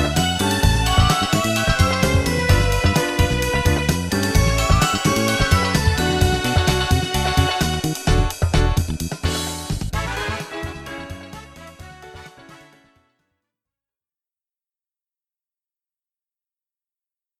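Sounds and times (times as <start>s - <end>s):
remix music: 0.0s - 12.9s.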